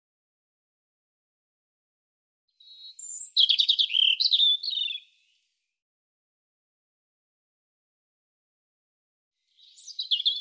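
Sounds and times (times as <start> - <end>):
European robin song of high thin warbles and trills: 2.6 - 5.2, 9.5 - 10.3.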